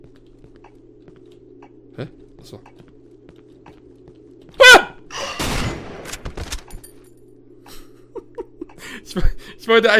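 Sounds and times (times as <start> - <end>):
speech: 2.0 - 2.9, 9.2 - 9.9
gunshots in a video game: 5.2 - 6.7.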